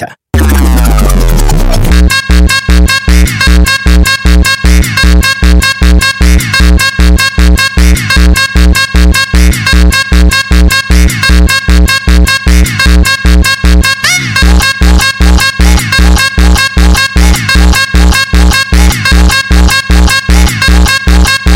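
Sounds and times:
sped up funk music: 0.4 - 21.5.

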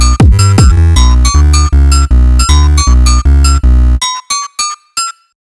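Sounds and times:
sped-up Brazilian phonk music: 0.0 - 4.0.

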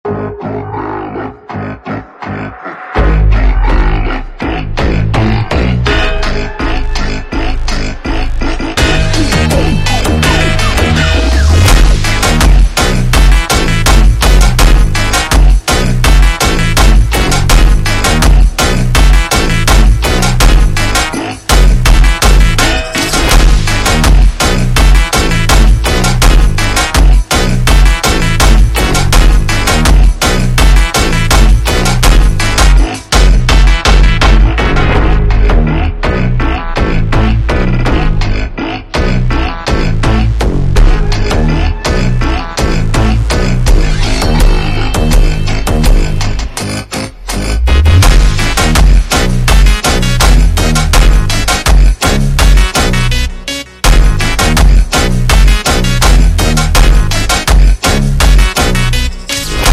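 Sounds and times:
super slowed montagem music: 0.0 - 59.7.

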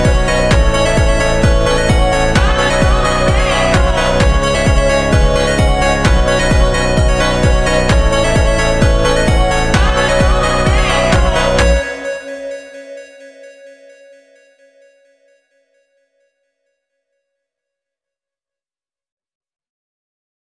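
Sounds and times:
phonk music: 0.0 - 14.2.

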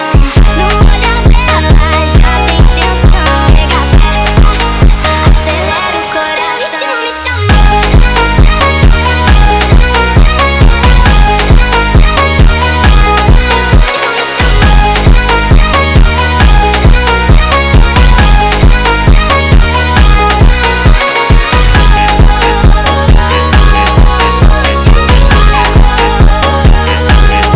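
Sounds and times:
sped up funk music: 0.2 - 27.5.

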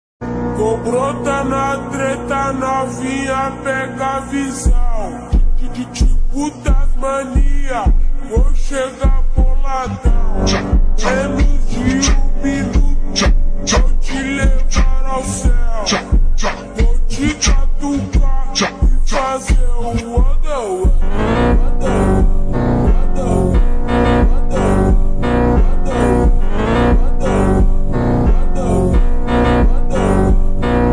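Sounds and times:
slowed phonk music: 0.2 - 30.9.

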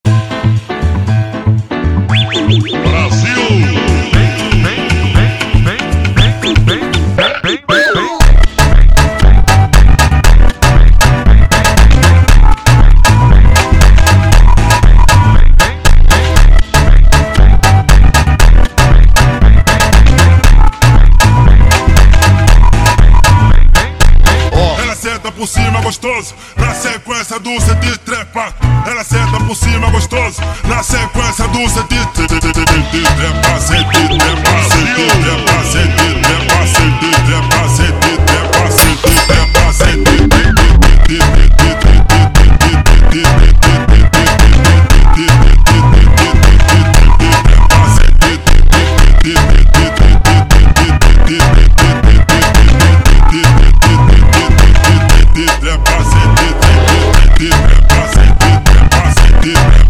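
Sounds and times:
slowed funk music: 0.0 - 26.0, 28.6 - 59.8.

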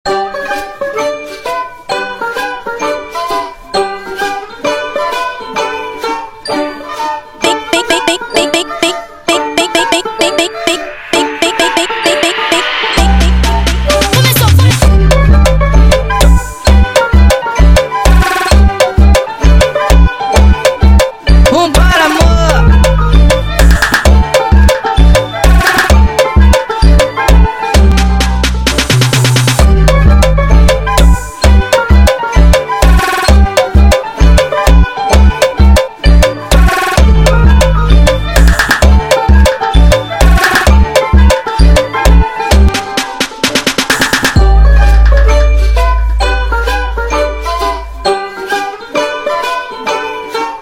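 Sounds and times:
Brazilian funk music: 1.6 - 50.5.

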